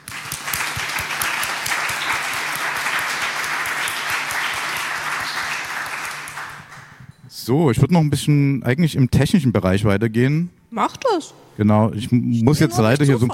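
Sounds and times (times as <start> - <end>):
applause: 0.0 - 7.1
speech: 7.5 - 13.3.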